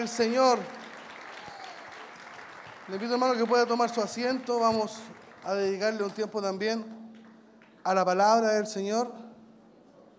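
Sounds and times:
speech: 0:00.0 - 0:00.8, 0:02.9 - 0:07.0, 0:07.8 - 0:09.2
audience applauding in praise: 0:00.0 - 0:06.4.

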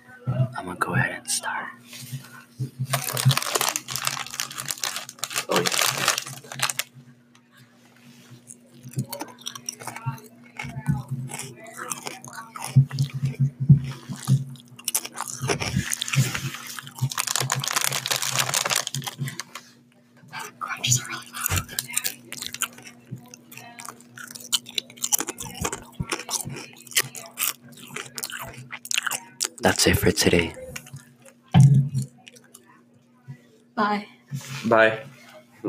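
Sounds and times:
speech: 0:00.6 - 0:03.6, 0:29.8 - 0:30.6, 0:34.7 - 0:35.6
chips being bitten and chewed for ASMR: 0:02.9 - 0:06.9, 0:08.4 - 0:19.6, 0:20.4 - 0:31.0, 0:32.0 - 0:32.6
wet chewing: 0:02.9 - 0:06.9, 0:08.3 - 0:19.6, 0:20.4 - 0:31.4, 0:32.0 - 0:32.7.

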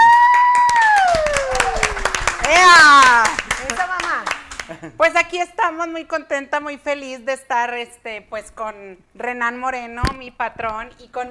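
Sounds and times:
audience applause: 0:00.0 - 0:04.9
speech: 0:04.9 - 0:11.3.

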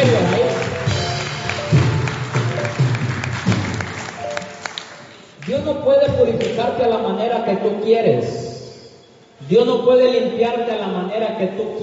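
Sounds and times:
audience applauding loudly: 0:00.0 - 0:05.7
speech: 0:06.7 - 0:08.4, 0:09.4 - 0:11.8.

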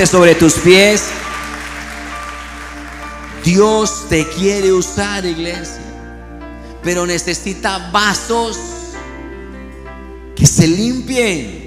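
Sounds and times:
speech: 0:00.0 - 0:01.2, 0:03.4 - 0:05.9, 0:06.8 - 0:08.8, 0:10.4 - 0:11.6
audience applause: 0:00.0 - 0:04.0.

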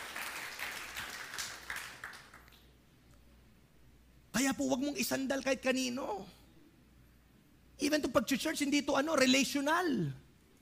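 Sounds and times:
congregation clapping in church: 0:00.0 - 0:02.7
speech: 0:04.4 - 0:06.4, 0:07.8 - 0:10.2.

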